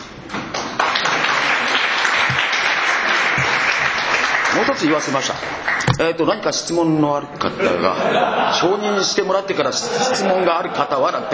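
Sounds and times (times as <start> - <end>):
audience applause: 0.4 - 5.9
speech: 4.6 - 11.3
laughter: 7.5 - 11.3.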